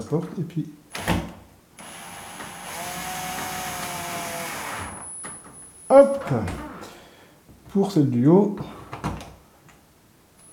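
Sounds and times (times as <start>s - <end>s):
speech: 0.0s - 1.2s, 6.0s - 6.6s, 7.8s - 8.8s
power screwdriver driving a screw: 1.8s - 5.0s.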